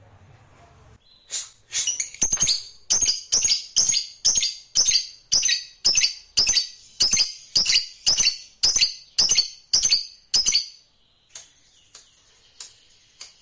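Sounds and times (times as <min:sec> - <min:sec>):
lovebird giving sharp high chirps: 0:01.0 - 0:13.4.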